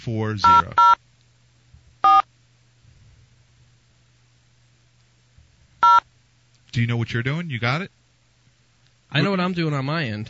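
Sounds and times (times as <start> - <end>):
speech: 0.0 - 1.0, 6.8 - 8.0, 9.1 - 10.2
faint steady low hum: 0.0 - 10.2
telephone keypad tones: 0.4 - 1.0, 2.0 - 2.3, 5.8 - 6.0.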